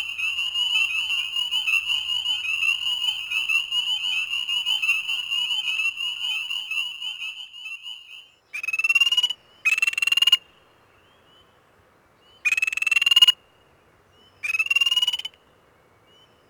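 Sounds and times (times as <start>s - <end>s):
spring peeper frog calls: 0.0s - 10.5s, 12.4s - 13.4s, 14.4s - 15.4s.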